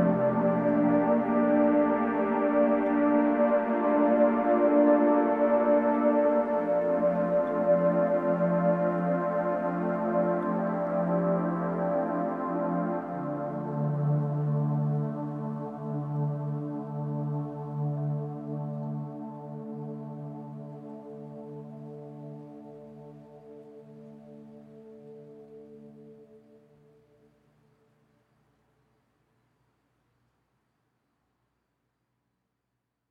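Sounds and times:
relaxing spa music: 0.0s - 28.0s.

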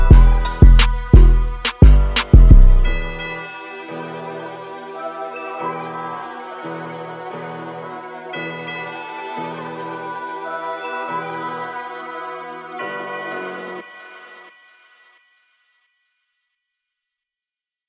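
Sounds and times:
type beat at 175 bpm in E minor: 0.0s - 2.8s.

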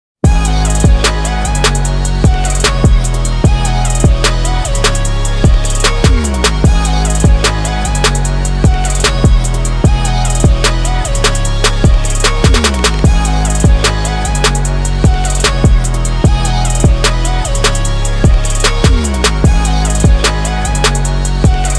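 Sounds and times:
instrumental music: 0.2s - 21.7s.

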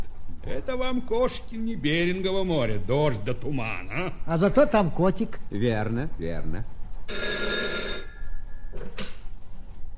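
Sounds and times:
speech: 0.5s - 6.8s
radio room call bell ringing: 7.1s - 8.7s.

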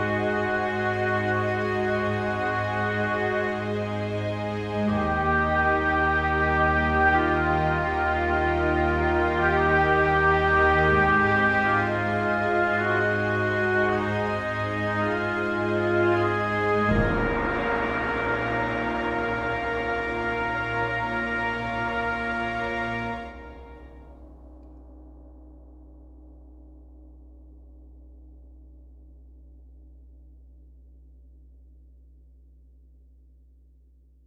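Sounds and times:
thunderous trumpets: 0.0s - 24.2s.

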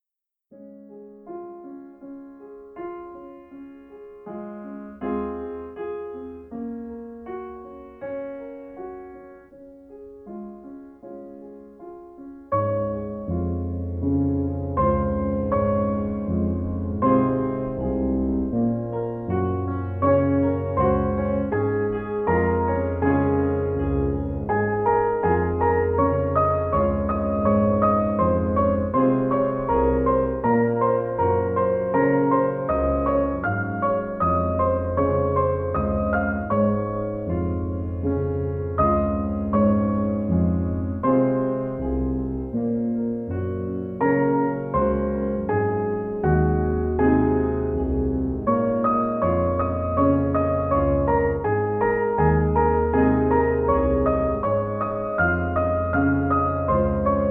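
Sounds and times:
chilled jazz piano: 0.6s - 57.2s.

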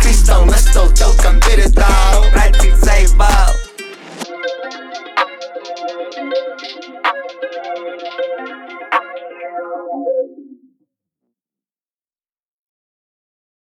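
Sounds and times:
33-37 Hz low bass tone: 0.0s - 3.6s.

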